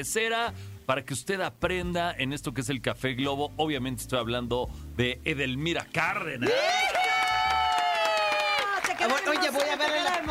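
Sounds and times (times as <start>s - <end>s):
speech: 0.0s - 6.9s, 9.0s - 10.2s
applause: 6.4s - 10.2s.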